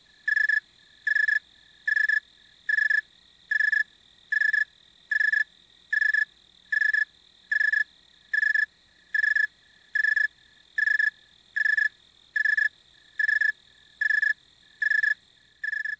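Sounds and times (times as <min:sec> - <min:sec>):
insects at night: 0:00.0 - 0:15.9.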